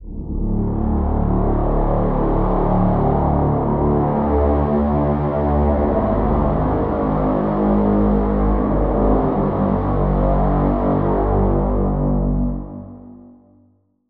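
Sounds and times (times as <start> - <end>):
synth pad: 0.0 - 13.5.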